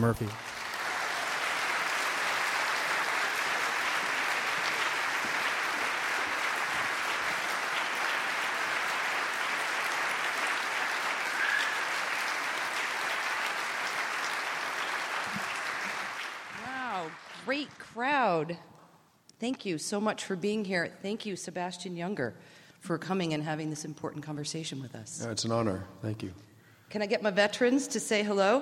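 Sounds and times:
speech: 0.0s - 0.5s, 18.0s - 18.7s, 19.4s - 28.6s
audience applause: 0.0s - 17.6s.

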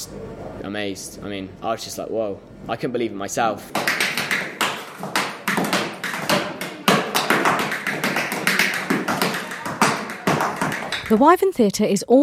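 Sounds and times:
speech: 0.0s - 4.0s, 11.1s - 12.2s
tap dancing steps: 3.7s - 11.3s.

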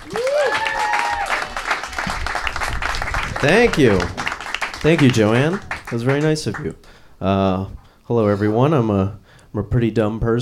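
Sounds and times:
audience applause: 0.0s - 6.9s
speech: 3.4s - 4.2s, 4.8s - 10.3s.

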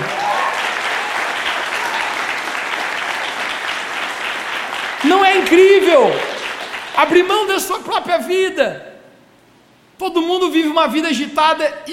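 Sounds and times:
audience applause: 0.0s - 7.5s
speech: 5.4s - 6.3s, 7.0s - 8.9s, 10.0s - 11.9s.

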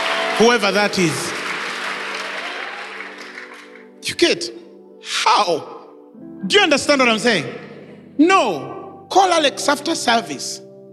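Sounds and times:
crowd clapping: 0.0s - 4.0s
speech: 0.4s - 1.3s, 4.1s - 7.6s, 8.2s - 10.6s.

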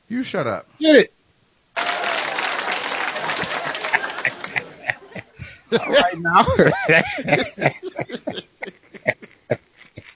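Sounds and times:
speech: 0.1s - 1.2s, 5.7s - 8.8s
applause sound effect: 1.8s - 4.8s
laughter: 1.8s - 10.1s.

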